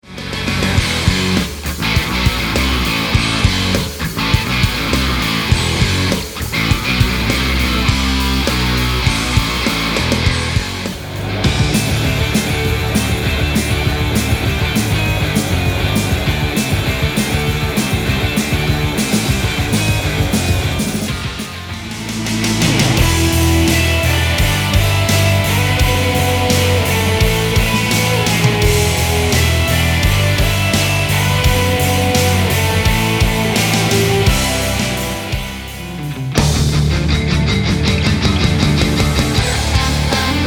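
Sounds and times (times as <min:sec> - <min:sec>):
crunch guitars: 0:00.0 - 0:40.4.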